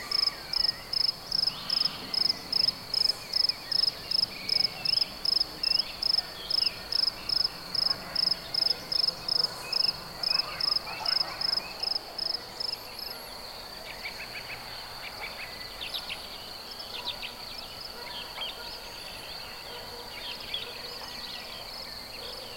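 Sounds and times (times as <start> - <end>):
countryside early spring night ambience: 0.0 - 22.5.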